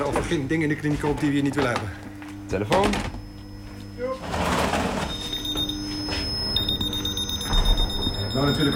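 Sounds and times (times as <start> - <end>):
speech: 0.1 - 3.2, 8.4 - 8.7
walk-through metal detector alarm tone: 2.5 - 8.7.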